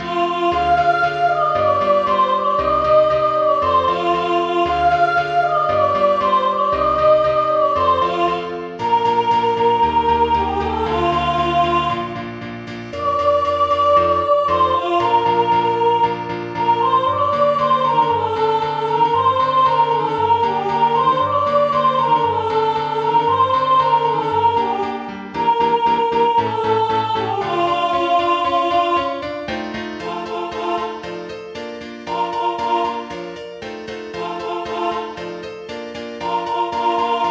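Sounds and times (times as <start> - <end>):
soprano singing: 0.0 - 31.3, 32.1 - 33.4, 34.1 - 37.3.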